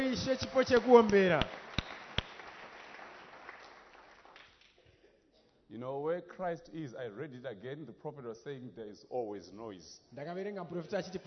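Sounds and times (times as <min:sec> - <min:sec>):
audience clapping hands: 0:00.0 - 0:04.9
speech: 0:00.2 - 0:01.7, 0:05.7 - 0:11.2.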